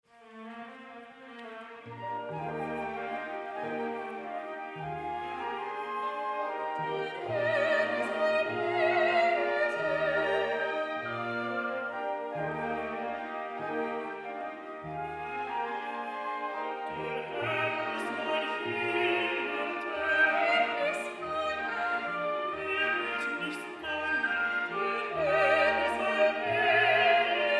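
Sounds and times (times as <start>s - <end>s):
soprano and tenor duet: 0.1s - 27.5s
choir singing: 2.3s - 14.8s, 16.6s - 27.5s.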